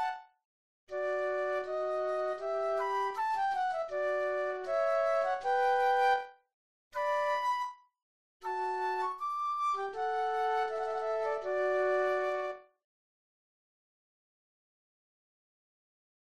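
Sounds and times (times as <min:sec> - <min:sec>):
classical andante flute duet: 0:01.0 - 0:06.4, 0:07.0 - 0:07.8, 0:08.4 - 0:12.7.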